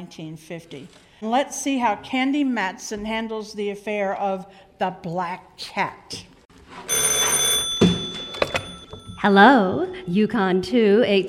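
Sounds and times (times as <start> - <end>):
speech: 0.0 - 6.3, 9.2 - 11.2
telephone ringing: 6.8 - 10.1.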